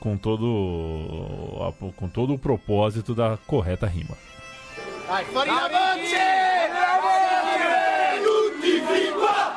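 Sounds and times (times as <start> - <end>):
speech: 0.0 - 4.4, 5.1 - 6.4
football fans singing a chant: 5.6 - 9.5.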